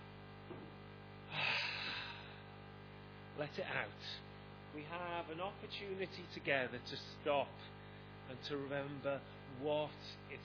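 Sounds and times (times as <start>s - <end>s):
deep breath in during a Christmas morning gathering: 1.3s - 2.6s
speech: 3.4s - 10.4s.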